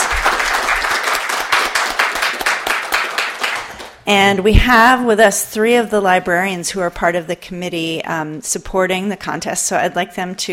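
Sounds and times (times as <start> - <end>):
audience applause: 0.0 - 4.0
speech: 4.1 - 10.5.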